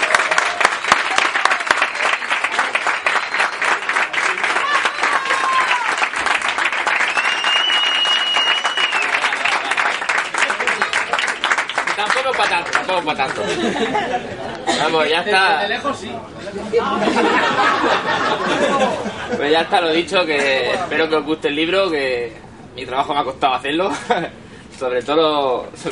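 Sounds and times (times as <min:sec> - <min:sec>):
applause: 0:00.0 - 0:13.4
laughter: 0:09.1 - 0:10.8, 0:13.1 - 0:15.3, 0:16.6 - 0:19.7
speech: 0:13.0 - 0:25.8.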